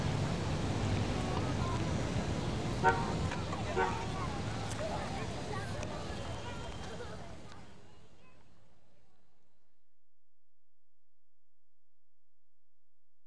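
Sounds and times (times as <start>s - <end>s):
traffic at the U.S.-Mexican border: 0.0s - 8.1s.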